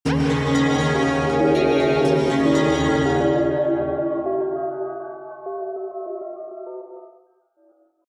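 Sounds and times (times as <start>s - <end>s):
synth bells roll: 0.1s - 6.4s
drones: 0.1s - 6.5s.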